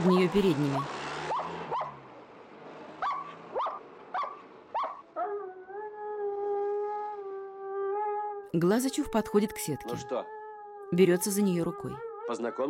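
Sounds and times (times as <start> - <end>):
speech: 0.3 - 1.0, 8.5 - 12.6
dog barking: 1.3 - 2.0, 3.0 - 5.4
dog's high-pitched whining howl: 4.8 - 12.6.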